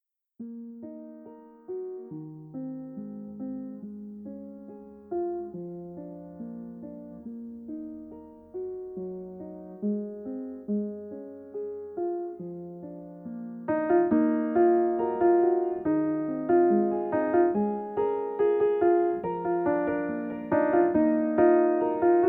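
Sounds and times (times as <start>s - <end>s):
classical piano: 0.4s - 22.2s.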